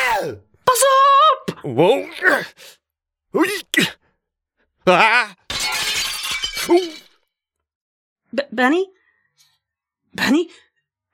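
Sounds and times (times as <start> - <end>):
speech: 0.2 - 4.0, 4.8 - 5.8, 6.6 - 7.0, 8.3 - 9.0, 10.2 - 10.6
window glass shattering on impact: 5.5 - 7.2.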